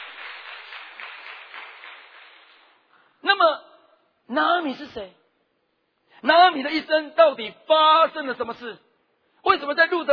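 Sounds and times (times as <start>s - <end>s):
audience applause: 0.0s - 2.8s
speech: 4.3s - 5.2s, 6.2s - 8.8s, 9.4s - 10.1s.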